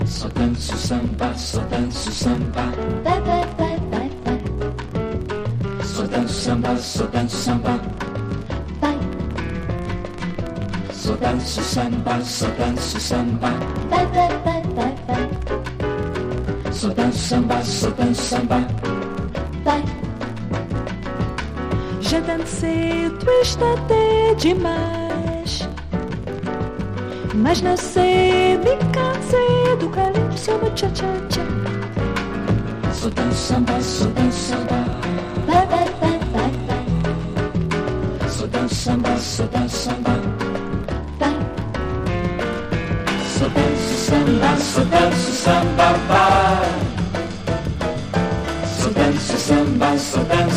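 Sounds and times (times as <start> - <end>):
samba jazz music: 0.0 - 50.5.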